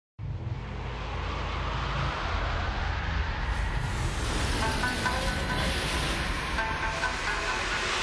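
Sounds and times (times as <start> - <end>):
sandstorm: 0.2 - 7.9.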